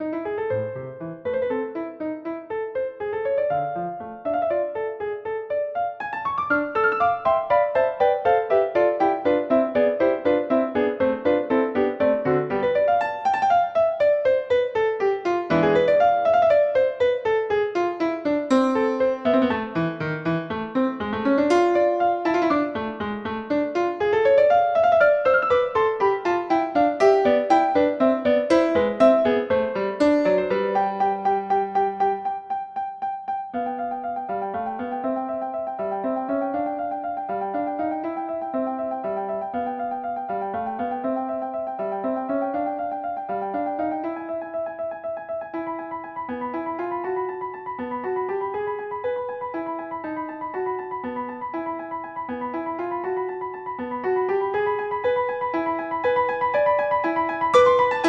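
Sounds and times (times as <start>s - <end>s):
piano synth piece: 0.0s - 58.0s.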